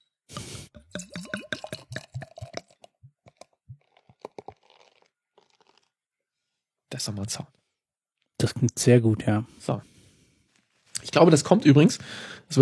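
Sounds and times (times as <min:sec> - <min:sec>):
beer glugging out of a bottle: 0:00.7 - 0:05.9
drips of beer: 0:00.8 - 0:05.9
speech: 0:07.0 - 0:07.6, 0:08.4 - 0:09.9, 0:11.1 - 0:12.6.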